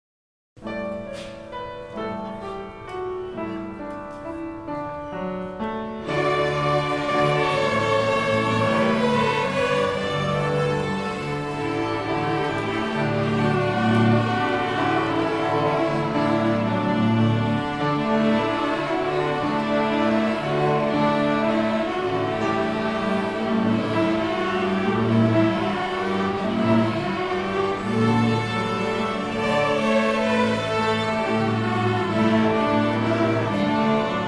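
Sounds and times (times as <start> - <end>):
orchestra playing a French folk song: 0.6 - 34.2.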